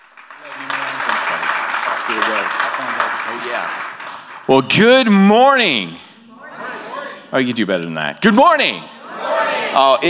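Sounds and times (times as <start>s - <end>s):
church congregation applauding to welcome a guest pastor: 0.0s - 4.7s
speech: 0.4s - 0.7s, 2.8s - 3.9s, 4.5s - 6.1s, 7.3s - 10.0s.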